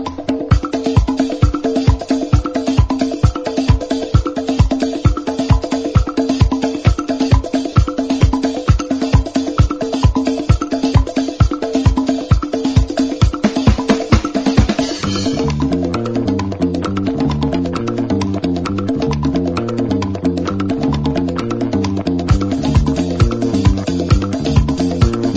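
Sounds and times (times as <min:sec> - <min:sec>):
African dance ringtone: 0:00.1 - 0:25.3.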